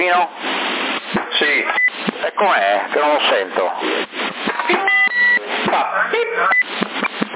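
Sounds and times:
speech: 0.0 - 0.6, 2.2 - 4.1
crackly band-limited CB radio noise: 0.0 - 7.3
garbled voice-like radio chatter: 1.0 - 7.3
CB radio transmission beep: 4.8 - 5.4.

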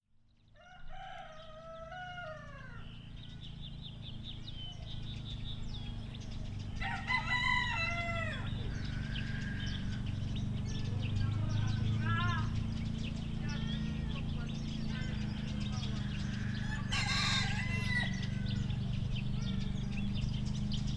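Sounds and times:
small birds twittering: 0.3 - 20.9
rooster crowing: 0.6 - 3.6, 6.7 - 10.9, 14.8 - 20.4
steady low engine drone: 2.5 - 20.9.

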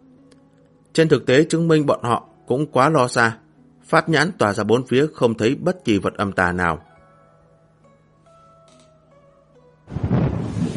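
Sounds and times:
speech: 1.0 - 6.9
thunder crashing: 9.9 - 10.7.

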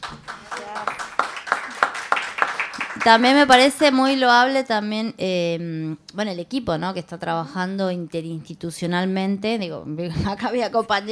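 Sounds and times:
audience clapping at a political economy congress: 0.0 - 4.2
speech: 3.0 - 11.1.

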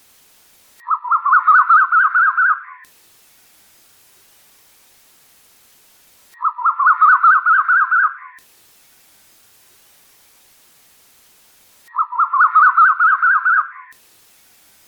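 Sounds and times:
bird chattering song: 0.8 - 2.9, 6.4 - 8.4, 11.9 - 14.0.

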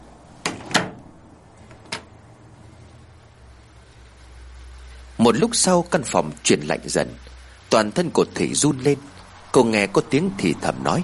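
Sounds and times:
hiss: 0.0 - 11.0
woman pulling a wooden window shutter shut: 0.4 - 1.2
speech: 5.3 - 11.0.

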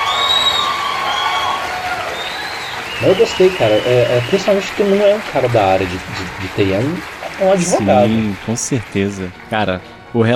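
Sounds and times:
crowd cheering and whooping: 0.0 - 5.6, 6.5 - 8.4
laughter: 3.0 - 9.2
speech: 3.0 - 10.3.

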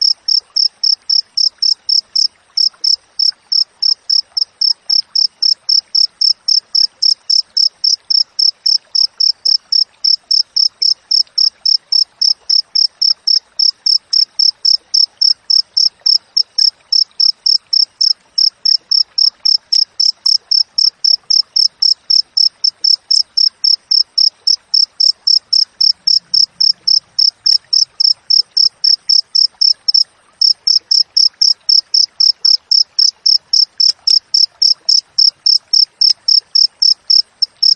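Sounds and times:
cricket chirping: 0.0 - 37.7.

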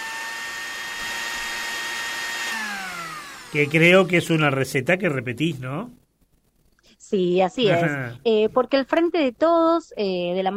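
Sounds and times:
blender whirring: 0.0 - 4.6
speech: 3.5 - 6.0, 7.1 - 10.5.

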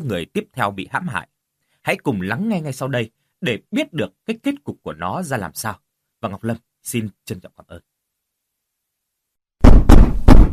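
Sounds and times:
speech: 0.0 - 7.9
heavy banging knocks on a door: 9.6 - 10.5.

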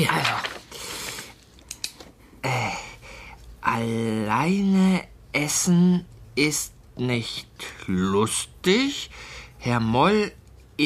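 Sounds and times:
paper shuffling: 0.0 - 2.1
speech: 3.7 - 10.8.

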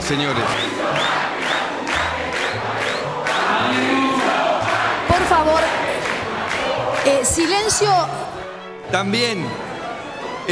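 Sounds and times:
crowd shouting and heckling insults: 0.0 - 8.4
speech: 0.1 - 1.2, 5.2 - 5.9, 7.0 - 8.3, 8.9 - 9.7.

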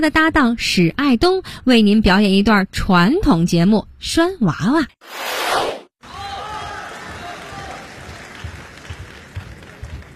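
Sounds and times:
speech: 0.0 - 5.4
audience applause: 6.2 - 10.1.

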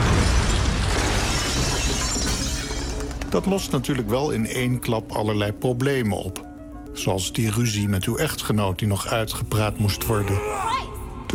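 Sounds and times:
crash of falling rocket stage: 0.0 - 2.9
speech: 3.3 - 11.3.

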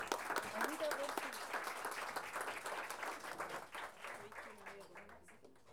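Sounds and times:
audience applause at the start of a feminist performance: 0.0 - 5.0.

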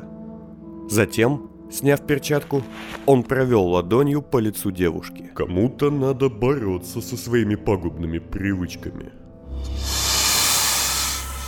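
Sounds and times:
speech: 0.9 - 9.2
snake hissing as it darts from a cabinet across the floor: 9.5 - 11.4.

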